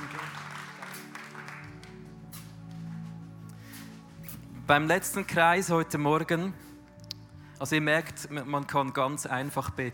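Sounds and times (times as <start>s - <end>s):
audience applause: 0.0s - 2.1s
speech: 4.7s - 6.6s, 7.6s - 9.9s.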